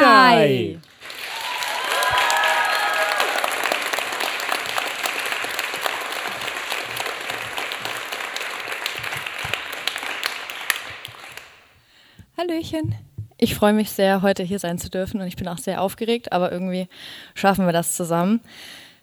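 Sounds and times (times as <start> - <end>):
audience applause welcoming performer on stage: 0.0 - 11.6
crowd cheers and whistles: 1.2 - 4.6
speech: 12.4 - 18.9.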